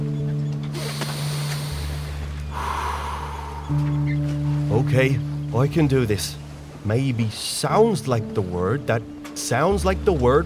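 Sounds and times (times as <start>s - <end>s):
low droning hum: 0.0s - 7.0s
long deep breath drawn in and let out: 0.8s - 4.0s
speech: 3.7s - 4.0s, 4.7s - 10.4s.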